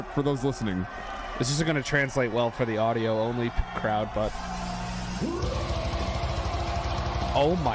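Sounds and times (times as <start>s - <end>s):
speech: 0.0s - 4.6s, 5.2s - 5.8s, 7.4s - 7.7s
metal concert crowd roaring in a wall of death: 0.0s - 7.7s
person shouting: 5.2s - 6.2s.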